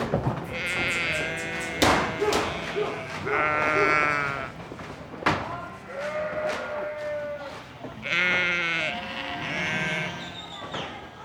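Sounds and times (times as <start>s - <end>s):
sheep flock bleating: 0.5s - 4.6s, 5.8s - 10.4s
sharp knock: 0.9s - 2.5s.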